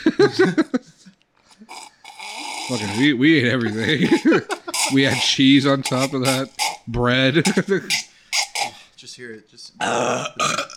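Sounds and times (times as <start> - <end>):
laughter: 0.0 - 1.0, 3.6 - 5.2
speech: 0.1 - 0.9, 2.7 - 8.1, 9.1 - 10.7
short breathy bursts and vocal noises: 1.4 - 6.9, 7.8 - 9.0
burp: 1.6 - 8.9, 9.8 - 10.7.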